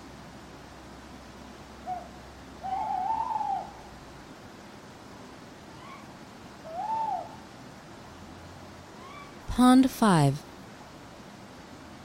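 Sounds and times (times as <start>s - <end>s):
owl hooting: 1.8s - 3.9s, 5.8s - 7.5s
speech: 9.6s - 10.5s.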